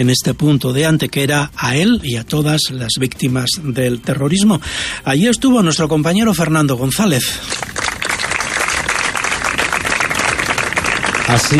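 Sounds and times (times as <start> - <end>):
speech: 0.0 - 7.7, 11.3 - 11.5
applause at memorial ceremony: 7.2 - 11.5.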